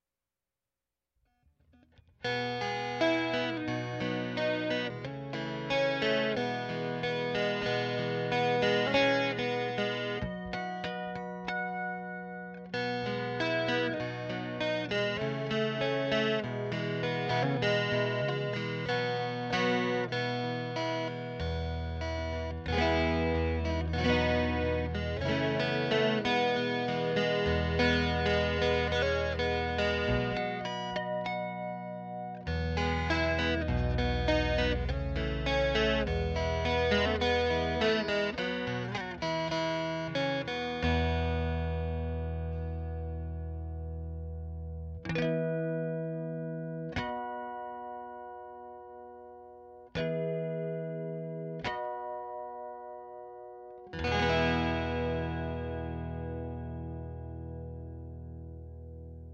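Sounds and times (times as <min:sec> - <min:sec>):
Epiphone guitar: 0:01.3 - 0:59.3.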